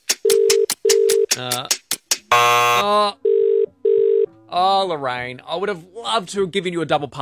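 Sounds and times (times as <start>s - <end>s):
phone ringing unanswered: 0.2s - 1.3s, 2.3s - 4.3s
speech: 1.4s - 1.8s, 4.5s - 7.2s.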